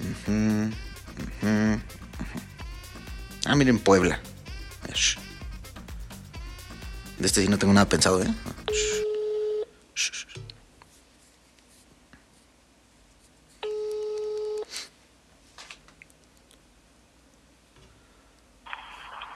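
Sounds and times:
speech: 0.2 - 2.4, 3.5 - 4.3, 5.0 - 5.2, 7.2 - 8.6
telephone ring tones: 8.3 - 9.7, 13.6 - 14.7.

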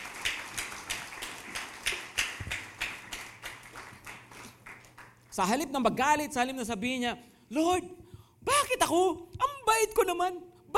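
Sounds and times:
church congregation clapping: 0.0 - 5.6
speech: 5.4 - 10.7.

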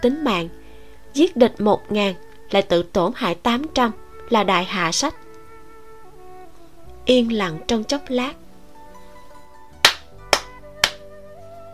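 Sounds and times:
speech: 0.0 - 0.6, 1.2 - 5.2, 7.1 - 8.4
round of hand clapping: 9.8 - 11.1.

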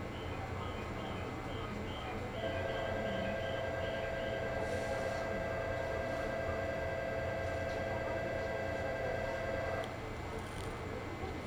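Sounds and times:
faint hum: 0.1 - 11.3
high chime-like notes: 2.4 - 9.8
local train on the Chuo East Line rumbling: 2.4 - 10.0
steady held tone: 2.4 - 10.0.

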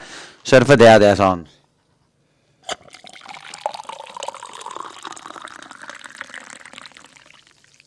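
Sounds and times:
speech: 0.5 - 1.6
coffee being poured: 2.7 - 7.8.

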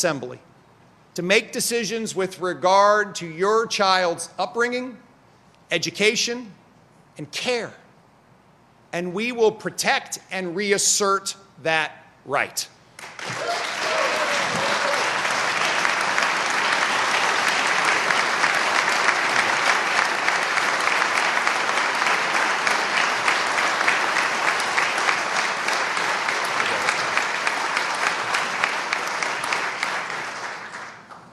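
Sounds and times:
speech: 0.0 - 0.5, 1.2 - 5.0, 5.7 - 6.6, 7.2 - 7.8, 8.9 - 13.3
legislators applauding: 13.0 - 31.3.

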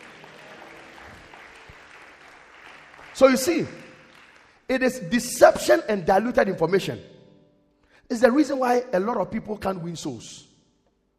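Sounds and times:
audience clapping hands: 0.0 - 5.1
speech: 3.2 - 3.8, 4.7 - 7.1, 8.1 - 10.5.

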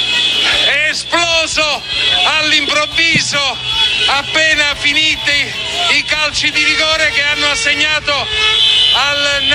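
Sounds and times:
Napoli football fans celebrating a Coppa Italia cup win: 0.2 - 7.2
speech: 1.6 - 9.5.

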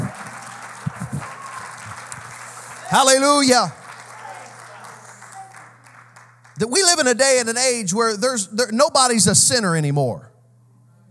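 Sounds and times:
audience clapping: 0.0 - 7.5
speech: 2.9 - 3.8, 6.6 - 10.3.

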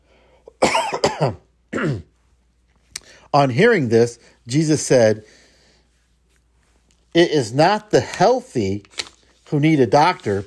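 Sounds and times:
person coughing: 0.5 - 2.2
speech: 1.2 - 2.1, 3.3 - 5.4, 7.1 - 10.4.

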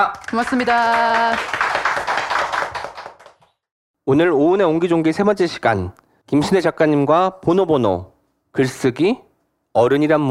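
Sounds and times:
speech: 0.0 - 2.3, 4.1 - 10.2
audience applause: 0.2 - 3.4.

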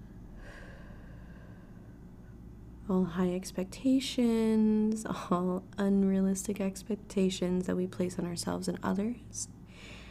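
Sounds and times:
deep breath drawn in during a meditation exercise: 0.4 - 2.0
speech: 2.9 - 10.0.

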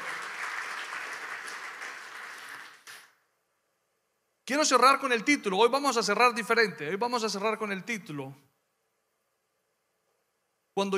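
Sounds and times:
audience applause: 0.0 - 3.1
speech: 4.5 - 8.5, 10.8 - 10.9.

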